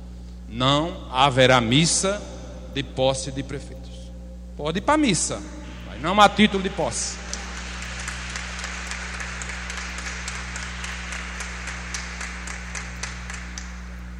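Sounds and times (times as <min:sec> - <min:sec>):
speech: 0:00.5 - 0:04.0, 0:04.6 - 0:07.3
audience applauding: 0:05.6 - 0:14.1.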